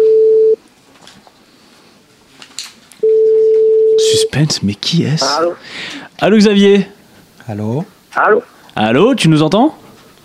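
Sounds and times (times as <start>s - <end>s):
telephone call ringing: 3.0s - 4.3s
speech: 4.4s - 9.8s.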